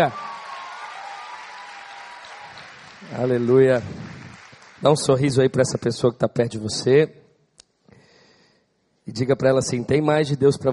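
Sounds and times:
speech: 0.0s - 0.2s, 3.1s - 4.0s, 4.8s - 7.2s, 9.1s - 10.7s
audience applause: 0.0s - 5.2s.

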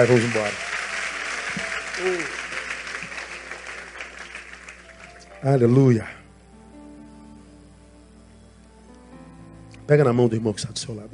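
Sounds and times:
speech: 0.0s - 0.7s, 1.5s - 2.4s, 5.4s - 6.2s, 9.9s - 11.1s
audience applauding loudly: 0.0s - 5.4s.

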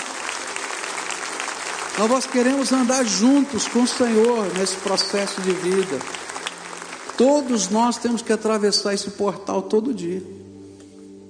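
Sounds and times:
audience applause: 0.0s - 8.6s
speech: 2.0s - 6.2s, 7.2s - 10.5s.

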